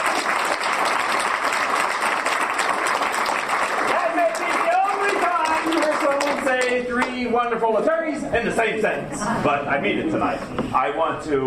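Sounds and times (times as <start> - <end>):
audience applause: 0.0 - 7.2
speech: 6.5 - 11.4.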